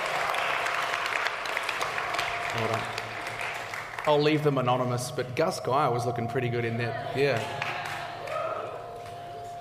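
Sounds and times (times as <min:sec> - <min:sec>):
audience applauding: 0:00.0 - 0:05.1, 0:07.2 - 0:09.5
speech: 0:02.5 - 0:03.0, 0:04.0 - 0:07.6.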